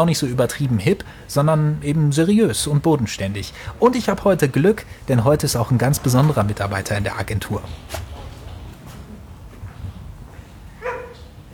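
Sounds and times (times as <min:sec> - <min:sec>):
speech: 0:00.0 - 0:08.1
steady low indoor rumble: 0:00.0 - 0:11.5
mixed-breed dog barking: 0:10.8 - 0:11.3.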